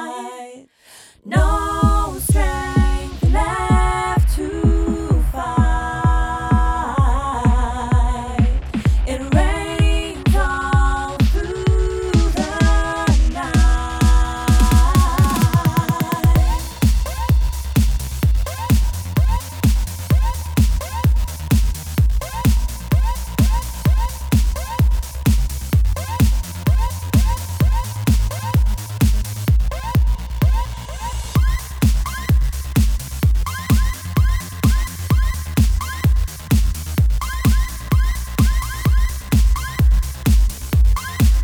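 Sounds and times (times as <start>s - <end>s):
club EDM electro mix: 1.4s - 41.4s.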